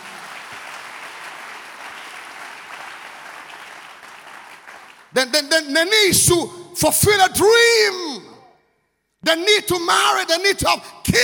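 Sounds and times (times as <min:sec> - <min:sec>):
crowd audience clapping: 0:00.0 - 0:05.5
speech: 0:05.1 - 0:08.2, 0:09.3 - 0:11.2.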